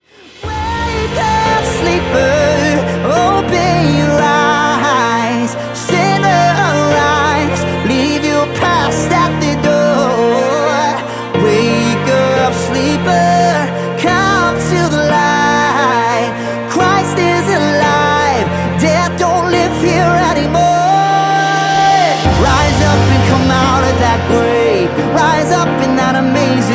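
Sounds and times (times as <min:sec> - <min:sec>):
piano music: 0:00.0 - 0:26.7.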